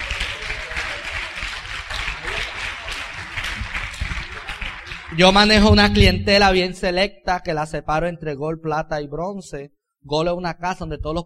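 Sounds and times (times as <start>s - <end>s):
crowd applauding: 0.0s - 6.3s
speech: 5.1s - 11.2s.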